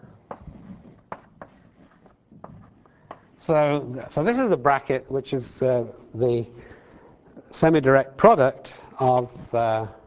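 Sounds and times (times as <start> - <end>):
writing on a board during a mathematics lecture: 0.0 - 3.4
speech: 3.4 - 6.7, 7.5 - 10.0.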